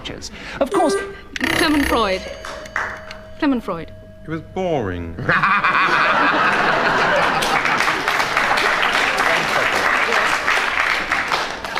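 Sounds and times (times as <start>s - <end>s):
speech: 0.1s - 2.5s, 3.4s - 6.7s
laughter: 5.2s - 10.4s
audience applause: 6.4s - 11.7s.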